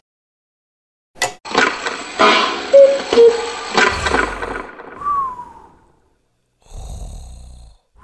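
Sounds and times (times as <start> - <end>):
clock: 1.2 - 5.2.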